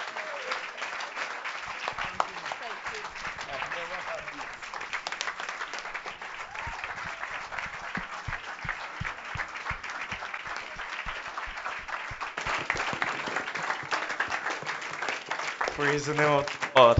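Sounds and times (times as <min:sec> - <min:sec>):
audience applause: 0:00.0 - 0:16.9
speech: 0:15.8 - 0:16.9.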